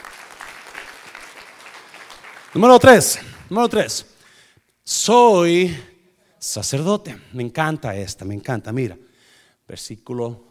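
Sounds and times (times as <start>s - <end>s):
audience applauding loudly: 0.0s - 3.4s
speech: 2.5s - 4.1s, 4.9s - 9.1s, 9.7s - 10.4s.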